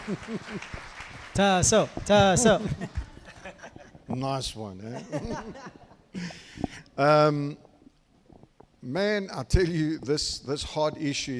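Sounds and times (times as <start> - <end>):
laughter: 0.0 - 0.8, 2.1 - 4.1, 4.8 - 6.3
audience applause: 0.0 - 3.0
speech: 0.1 - 3.0, 4.1 - 7.6, 8.8 - 11.3.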